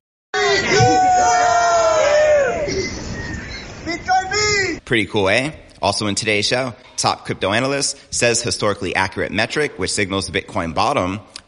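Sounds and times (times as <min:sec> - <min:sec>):
crowd screaming: 0:00.4 - 0:04.8
speech: 0:04.9 - 0:11.4.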